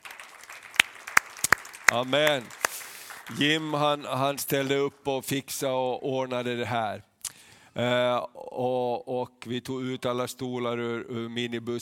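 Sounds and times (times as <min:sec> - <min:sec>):
scattered audience hand claps: 0:00.0 - 0:04.6
speech: 0:01.9 - 0:02.6, 0:03.3 - 0:07.1, 0:07.8 - 0:11.8.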